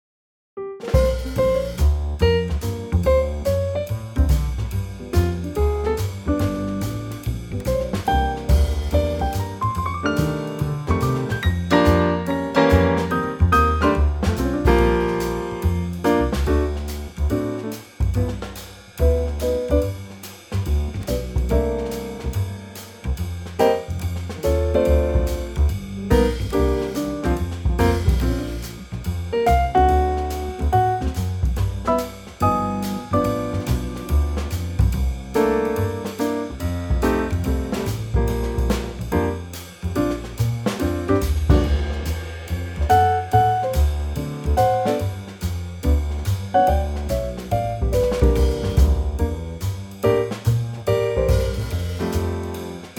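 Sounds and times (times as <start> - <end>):
B-flat trio backing track: 0.8 - 52.9.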